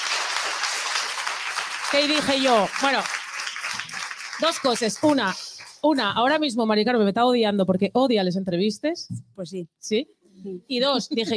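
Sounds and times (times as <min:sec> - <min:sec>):
audience applause: 0:00.0 - 0:05.8
speech: 0:01.9 - 0:03.2, 0:04.4 - 0:11.3.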